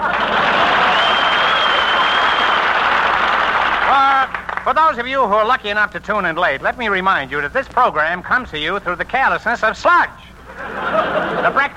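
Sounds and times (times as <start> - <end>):
laughter: 0.0 - 2.2, 10.5 - 11.7
audience applause: 0.0 - 4.7
speech: 4.7 - 11.7.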